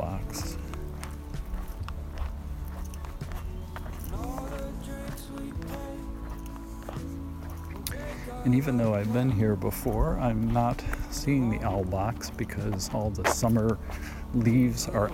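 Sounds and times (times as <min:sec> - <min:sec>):
footsteps walking outdoors along the tree-lined edge of a green belt: 0:00.0 - 0:15.1
bird chirps: 0:03.1 - 0:06.0
speech: 0:08.4 - 0:15.1.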